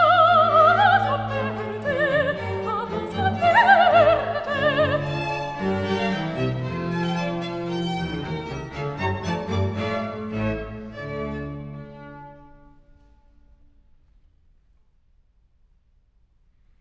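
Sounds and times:
mezzo-soprano or soprano singing: 0.0s - 7.4s
strings playing: 0.0s - 13.1s.

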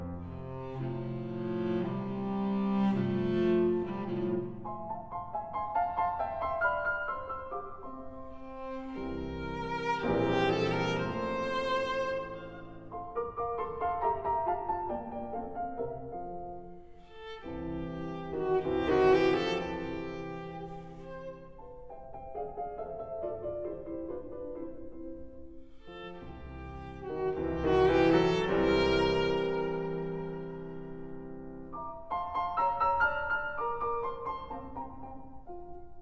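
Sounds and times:
cello: 0.0s - 36.0s
piano: 0.0s - 36.0s.

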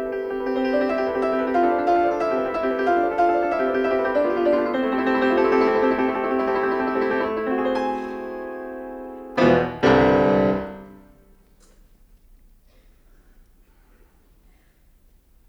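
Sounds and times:
piano suite: 0.0s - 11.4s.

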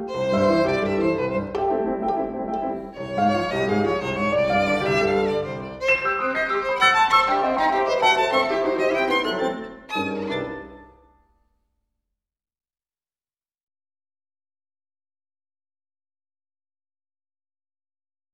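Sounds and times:
rumba for two pianos or orchestra: 0.0s - 11.0s.

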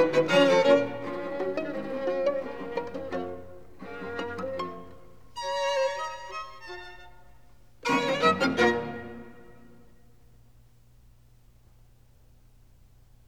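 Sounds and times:
string quartet adagio: 0.0s - 10.0s.

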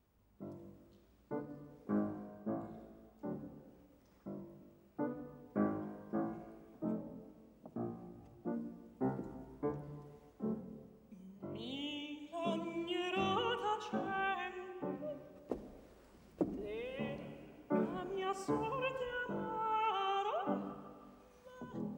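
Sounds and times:
piano: 0.0s - 21.9s
voice: 11.1s - 15.2s, 16.5s - 21.9s.

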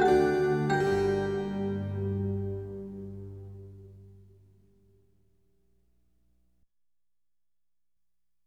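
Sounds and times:
minuet: 0.0s - 4.3s.

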